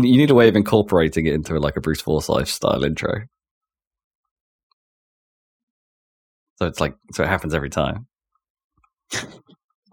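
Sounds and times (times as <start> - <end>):
speech: 0.0 - 3.3, 6.6 - 8.1, 9.1 - 9.5
person coughing: 9.1 - 9.5.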